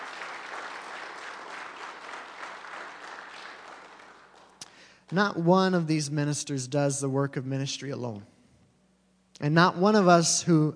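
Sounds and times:
round of applause: 0.0s - 5.2s
speech: 5.1s - 8.3s, 9.4s - 10.7s.

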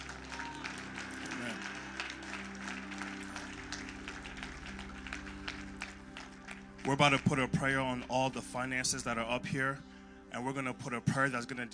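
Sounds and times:
audience clapping hands: 0.0s - 8.1s
sustained low musical tones: 0.0s - 11.7s
speech: 6.9s - 11.7s.

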